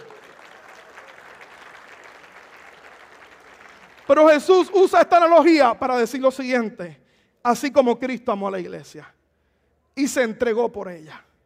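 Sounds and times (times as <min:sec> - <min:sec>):
applause: 0:00.0 - 0:05.0
speech: 0:04.1 - 0:09.2, 0:10.0 - 0:11.3.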